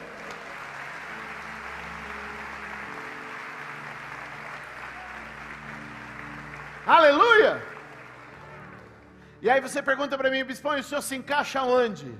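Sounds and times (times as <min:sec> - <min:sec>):
audience applause: 0:00.0 - 0:09.4
speech: 0:06.9 - 0:07.7, 0:09.4 - 0:12.1.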